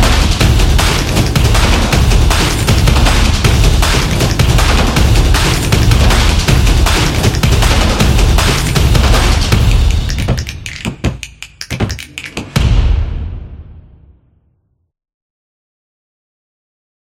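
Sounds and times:
soccer drums: 0:00.0 - 0:13.2.

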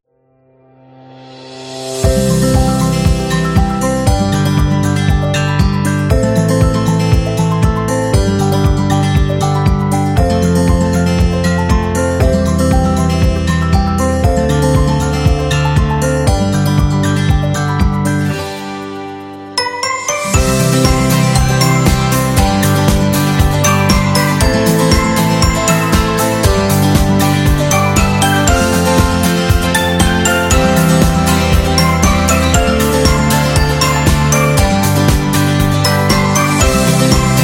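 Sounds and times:
happy instrumental music: 0:01.2 - 0:37.4.

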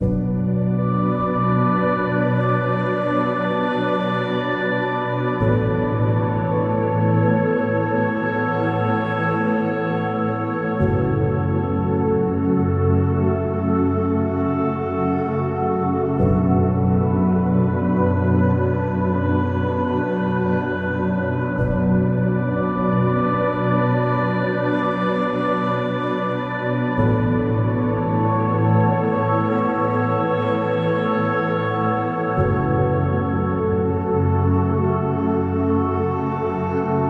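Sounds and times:
meditation music: 0:00.0 - 0:37.0.

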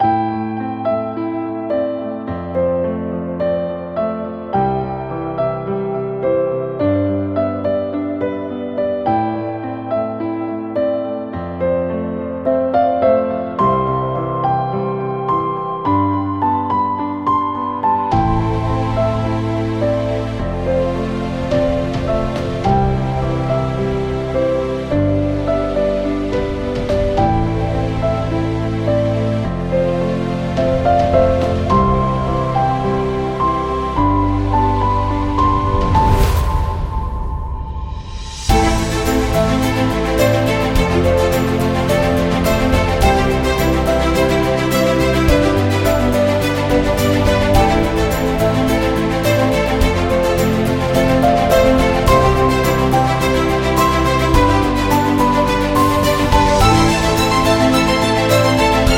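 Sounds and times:
happy wedding music: 0:00.0 - 0:58.9.

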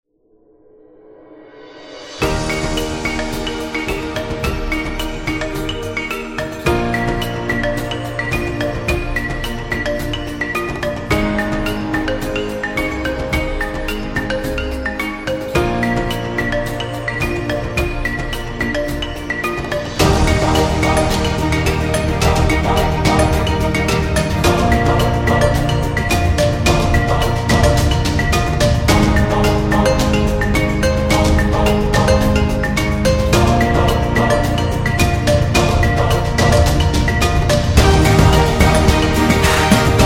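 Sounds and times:
Corporate Africa music: 0:01.8 - 0:40.0.

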